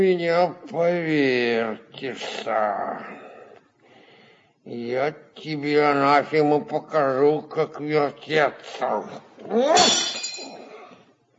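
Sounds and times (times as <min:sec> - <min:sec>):
speech: 0:00.0 - 0:03.3, 0:04.7 - 0:10.2
glass carafe smashing: 0:09.8 - 0:10.7
scattered tinkling glass shards: 0:09.8 - 0:10.7.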